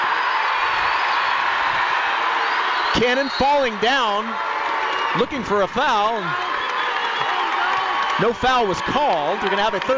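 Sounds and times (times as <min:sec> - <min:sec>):
basketball arena crowd cheering: 0:00.0 - 0:09.9
speech: 0:03.0 - 0:04.5, 0:05.2 - 0:06.5, 0:08.2 - 0:09.9.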